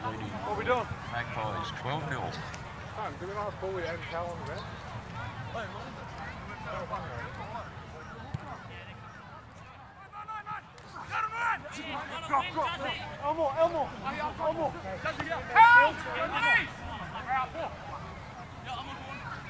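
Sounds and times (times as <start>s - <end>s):
crowd babble at a rugby league match: 0.0s - 19.4s
people shouting at a rugby league match: 15.4s - 16.7s.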